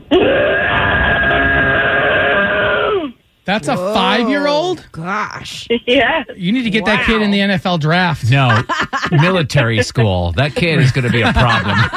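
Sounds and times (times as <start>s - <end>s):
child imitating a dinosaur roar: 0.1s - 3.2s
speech: 3.5s - 11.9s
laughter: 8.3s - 11.9s.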